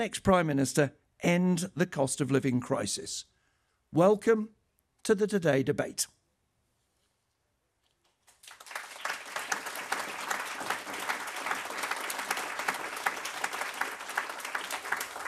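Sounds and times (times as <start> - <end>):
speech: 0.0 - 3.3, 3.9 - 6.2
studio audience applause at a debate in London's Broadcasting House: 8.3 - 15.2.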